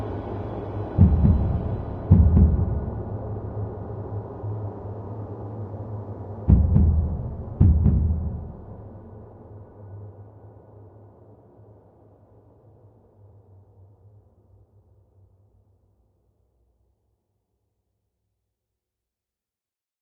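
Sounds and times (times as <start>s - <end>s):
danger music: 0.9s - 4.6s, 6.5s - 9.1s.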